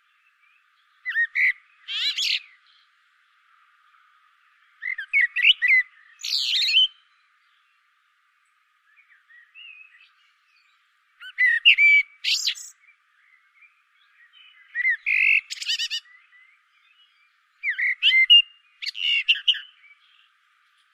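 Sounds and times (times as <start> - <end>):
common blackbird whistled song: 0.0 - 2.9, 4.6 - 7.7, 8.8 - 20.3.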